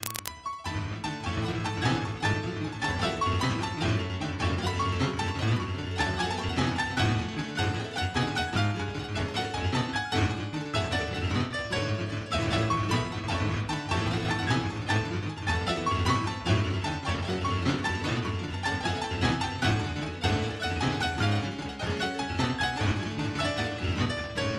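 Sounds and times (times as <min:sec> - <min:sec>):
piano music: 0:00.0 - 0:24.5.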